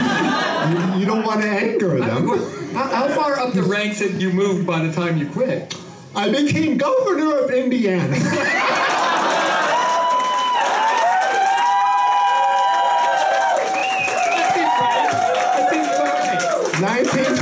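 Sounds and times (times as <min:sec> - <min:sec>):
laughter: 0:00.0 - 0:03.4, 0:08.1 - 0:10.2
speech: 0:00.7 - 0:08.9
audience clapping: 0:08.6 - 0:17.4.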